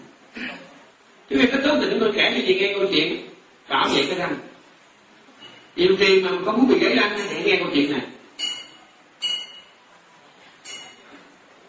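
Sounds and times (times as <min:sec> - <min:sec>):
speech: 0:01.3 - 0:04.4, 0:05.8 - 0:08.2
bell ringing: 0:08.4 - 0:09.8.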